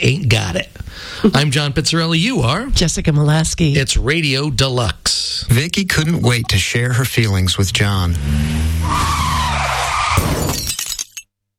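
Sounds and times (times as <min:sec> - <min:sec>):
speech: 0:00.0 - 0:09.2
car tires skidding before hitting a pedestrian: 0:07.6 - 0:10.6
crash with scattered clattering and shattering: 0:08.8 - 0:11.2.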